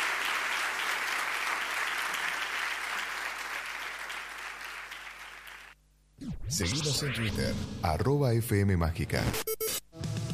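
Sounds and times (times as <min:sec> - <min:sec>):
audience applause: 0:00.0 - 0:05.8
speech: 0:06.2 - 0:09.4.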